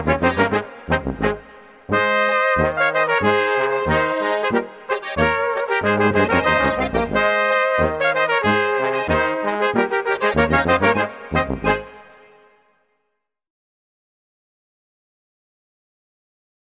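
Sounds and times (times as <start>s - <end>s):
Bavarian folk music: 0.0s - 12.2s.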